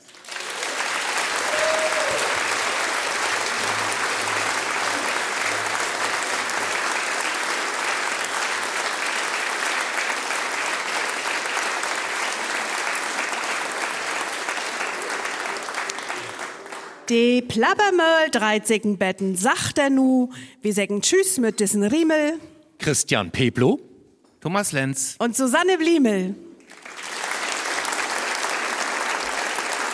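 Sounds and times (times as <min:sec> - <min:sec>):
audience applause in a hall: 0:00.0 - 0:17.1, 0:26.6 - 0:29.9
speech: 0:17.1 - 0:26.5.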